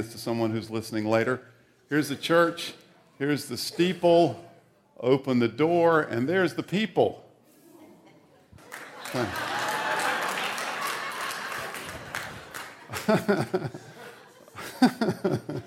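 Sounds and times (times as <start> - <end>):
speech: 0.0 - 7.2, 9.1 - 9.5, 13.0 - 13.9, 14.8 - 15.6
crowd laughing: 8.5 - 15.6
audience member clapping: 8.6 - 13.6.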